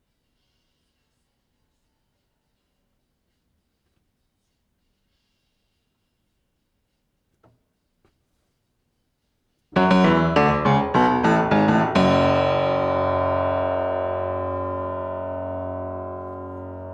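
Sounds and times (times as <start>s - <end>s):
piano: 9.8s - 16.9s.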